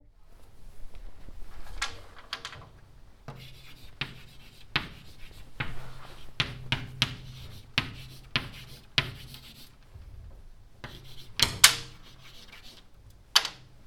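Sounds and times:
chalk writing on chalkboard: 0:03.3 - 0:09.8, 0:10.8 - 0:12.9.

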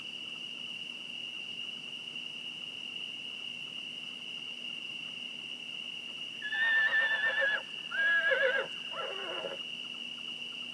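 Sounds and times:
steady high insect drone: 0:00.0 - 0:10.7
horse whinnying: 0:06.4 - 0:09.6.

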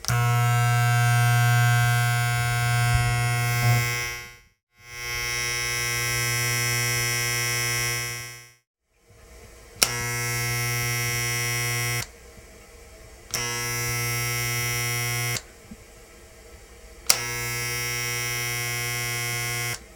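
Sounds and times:
shaver: 0:00.0 - 0:08.6, 0:09.8 - 0:12.1, 0:13.3 - 0:15.5, 0:17.1 - 0:19.9.

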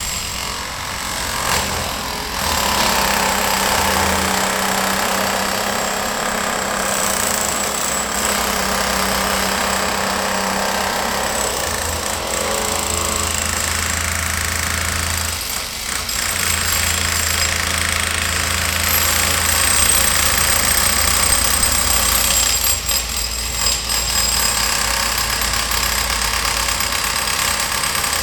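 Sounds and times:
drilling away stone in Bremen: 0:00.0 - 0:28.2.

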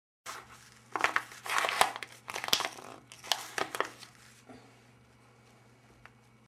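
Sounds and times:
paper crumpling: 0:00.3 - 0:04.4.

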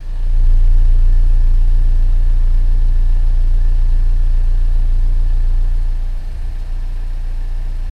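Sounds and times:
BMW 118i engine running by exhaust: 0:00.0 - 0:07.9.

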